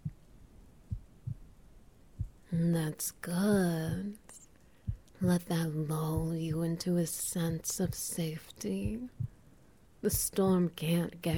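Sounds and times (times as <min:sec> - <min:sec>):
heartbeat heard through chest: 0:00.0 - 0:00.3, 0:00.9 - 0:01.5, 0:02.1 - 0:02.5, 0:03.4 - 0:04.2, 0:04.8 - 0:06.8, 0:07.4 - 0:08.2, 0:08.8 - 0:09.4, 0:10.1 - 0:11.3
speech: 0:02.5 - 0:04.4, 0:05.2 - 0:09.3, 0:10.0 - 0:11.3.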